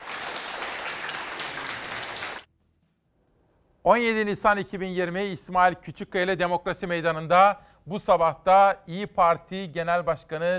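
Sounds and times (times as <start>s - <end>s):
applause for discharged patients: 0.0s - 2.5s
speech: 3.9s - 10.5s.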